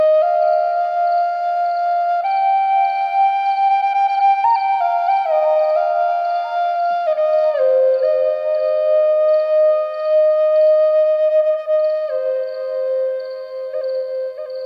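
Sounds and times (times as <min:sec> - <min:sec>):
Native American flute lullaby: 0:00.0 - 0:14.6
crickets chirping at nightfall: 0:00.0 - 0:14.6.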